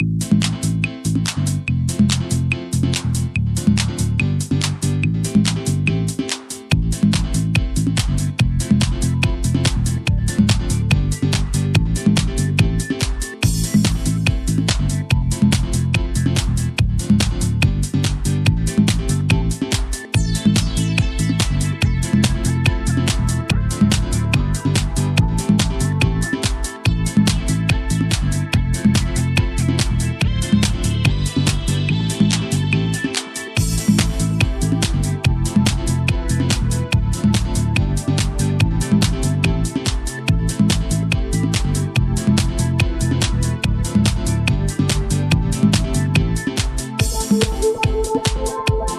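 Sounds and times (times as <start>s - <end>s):
fitness beat: 0.0s - 48.9s.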